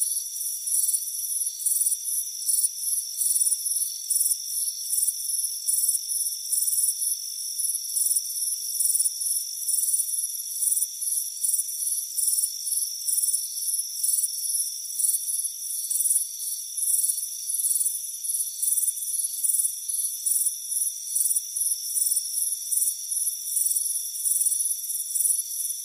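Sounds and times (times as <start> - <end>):
crickets chirping: 0.0 - 25.8.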